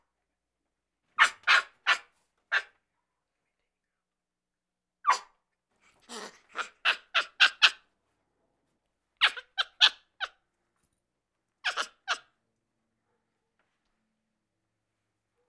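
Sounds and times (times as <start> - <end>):
capuchin monkey fear calls: 1.2 - 2.7, 5.9 - 7.8, 9.2 - 10.4, 11.7 - 12.3.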